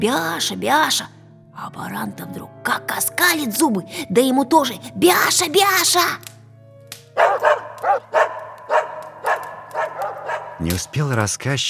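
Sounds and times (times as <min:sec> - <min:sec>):
speech: 0:00.0 - 0:06.3, 0:10.6 - 0:11.6
two dogs barking: 0:07.2 - 0:11.0.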